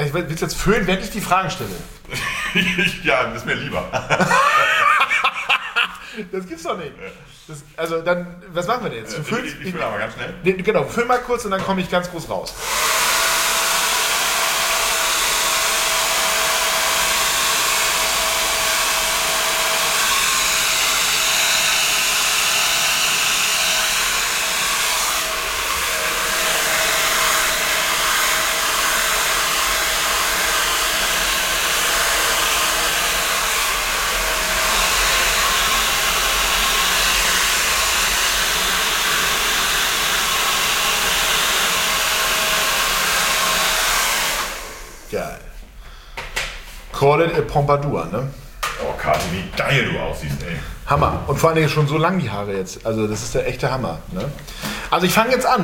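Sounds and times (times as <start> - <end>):
speech: 0.1 - 4.9, 6.2 - 12.9, 47.2 - 48.4, 49.0 - 55.6
laughter: 2.1 - 7.4
hair dryer blowing: 4.0 - 6.2, 12.6 - 45.1.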